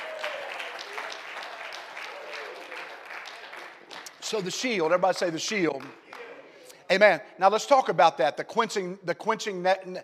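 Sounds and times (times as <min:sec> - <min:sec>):
audience clapping: 0:00.0 - 0:06.4
speech: 0:04.3 - 0:06.0, 0:06.9 - 0:10.0.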